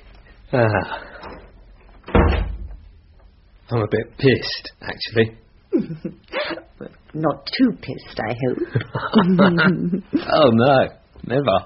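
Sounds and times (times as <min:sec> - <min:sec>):
speech: 0:00.5 - 0:01.1, 0:03.7 - 0:11.6
door creaking open on a squeaky hinge: 0:01.2 - 0:02.8
door thudding shut: 0:02.1 - 0:02.8
laughter: 0:08.7 - 0:10.4.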